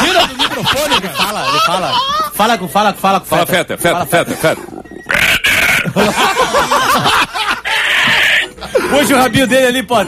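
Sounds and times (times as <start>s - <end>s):
people laughing: 0.0s - 2.3s, 5.7s - 9.2s
speech: 0.8s - 4.8s, 5.9s - 6.8s, 8.9s - 10.0s
pig grunting inside a radio studio: 4.2s - 6.0s.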